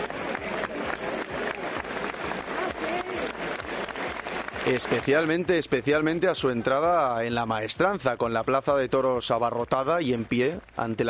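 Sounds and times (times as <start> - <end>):
crowd cheering and shouting: 0.0 - 7.2
crowd clapping: 0.0 - 11.0
speech: 4.7 - 11.0.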